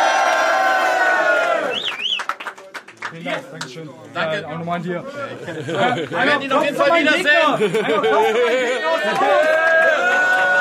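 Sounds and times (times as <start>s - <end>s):
audience applause and cheering: 0.0s - 2.7s, 8.6s - 10.5s
speech: 3.1s - 10.5s
laughter: 5.0s - 10.4s.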